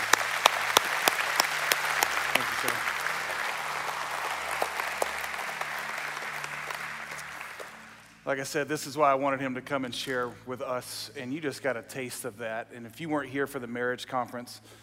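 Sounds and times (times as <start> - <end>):
audience applause: 0.0 - 8.2
speech: 2.6 - 2.9, 8.3 - 14.8.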